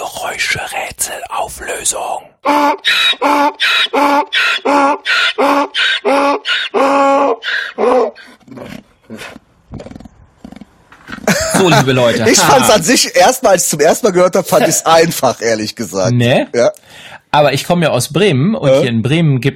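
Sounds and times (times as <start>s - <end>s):
speech: 0.2s - 8.2s, 11.6s - 19.5s
donkey braying: 2.4s - 11.2s
laughter: 11.2s - 12.9s.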